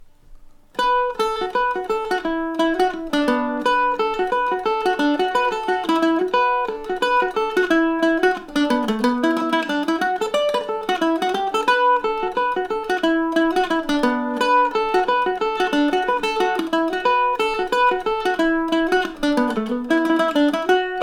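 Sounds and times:
mandolin: 0.0 - 21.0.

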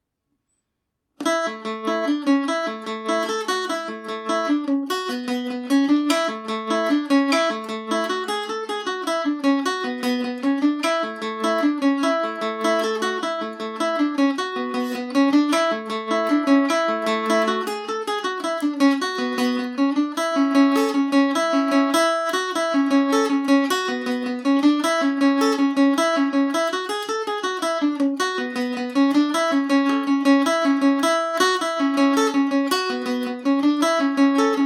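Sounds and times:
Irish mandolin playing in A major: 1.2 - 34.6.

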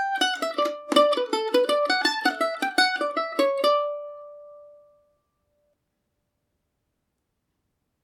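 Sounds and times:
mandolin in D major: 0.0 - 5.2.

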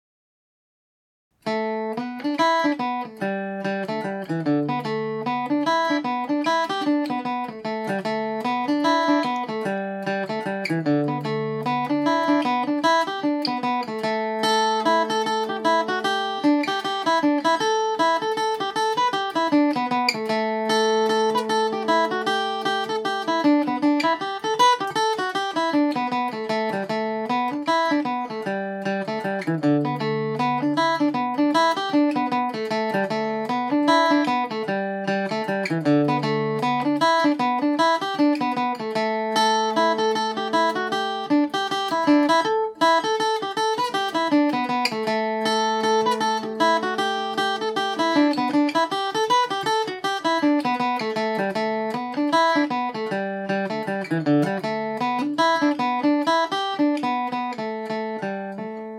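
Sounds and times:
Irish mandolin in A dorian: 1.4 - 58.9.

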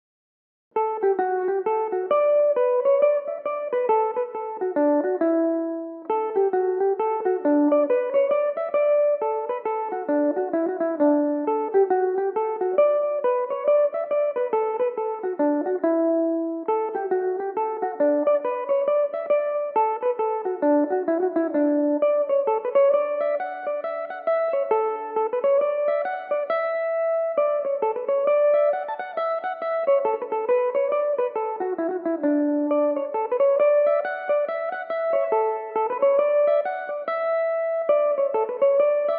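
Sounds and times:
Irish mandolin playing in D major: 0.8 - 39.1.

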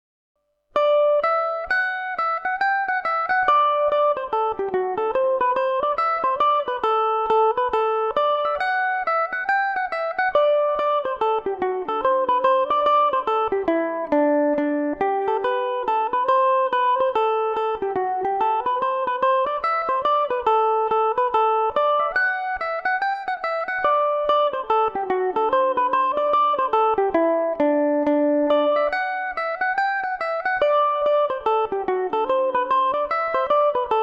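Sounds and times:
Irish mandolin in D mixolydian: 0.8 - 34.0.

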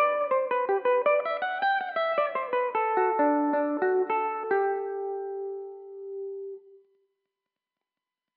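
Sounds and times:
Irish mandolin in D mixolydian: 0.0 - 6.6.

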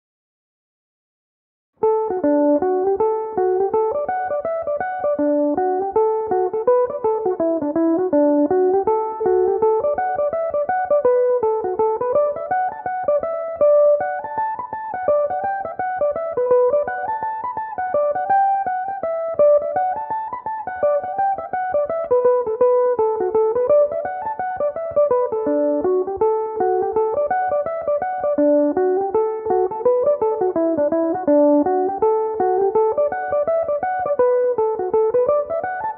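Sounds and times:
mandolin in D major: 1.8 - 35.9.

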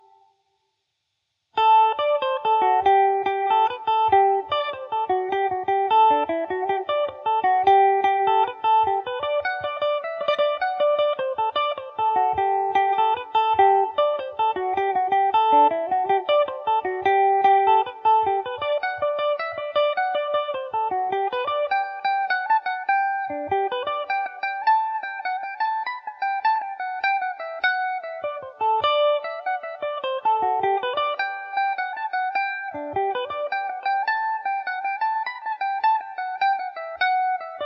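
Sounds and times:
mandolin playing in G major: 1.6 - 37.6.

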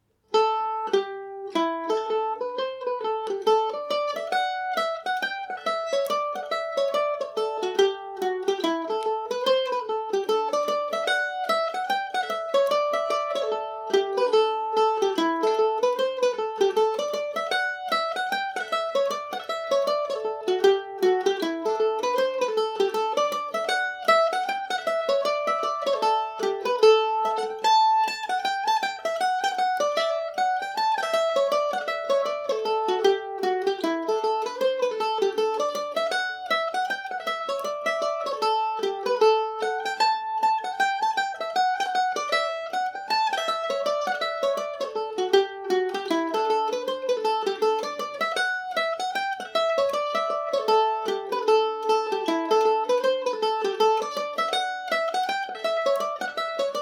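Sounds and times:
Irish mandolin in A Dorian: 0.0 - 56.8.

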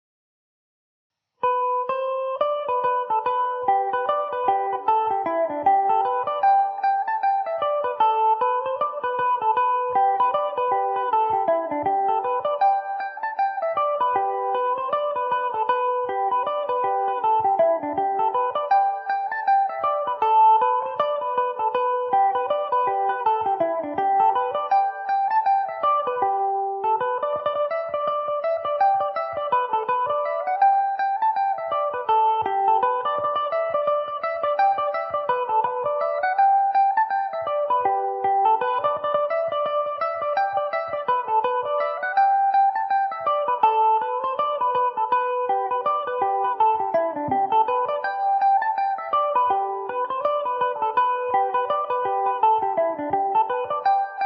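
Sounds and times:
Irish mandolin in G major: 1.4 - 54.2.

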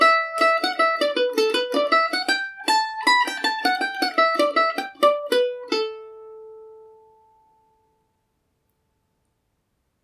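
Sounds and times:
mandolin reel in G major: 0.0 - 6.1.

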